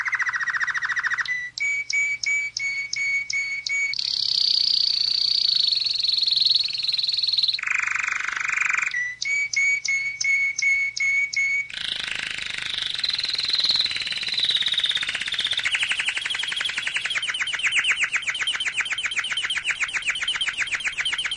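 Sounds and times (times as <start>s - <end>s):
canary song with buzzy tour, whistled notes and trills: 0.0s - 21.3s.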